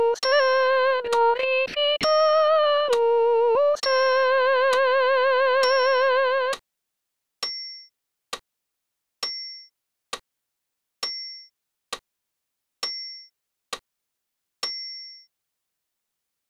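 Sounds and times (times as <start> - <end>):
solo soprano singing: 0.0 - 6.6.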